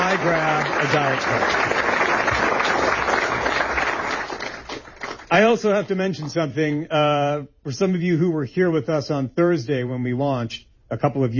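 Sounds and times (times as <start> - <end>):
audience round of applause: 0.0 - 5.6
speech: 0.2 - 1.8, 5.3 - 11.3.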